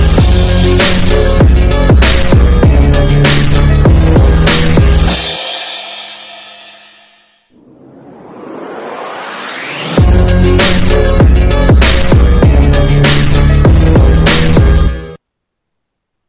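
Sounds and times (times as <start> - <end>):
bass track: 0.0 - 5.3, 9.8 - 15.2.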